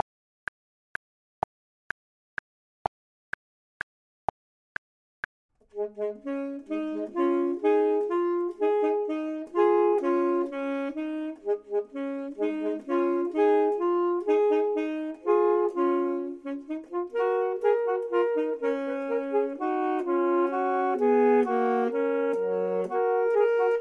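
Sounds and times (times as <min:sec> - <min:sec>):
clarinet: 0:05.7 - 0:23.7
saxophone: 0:05.7 - 0:23.7.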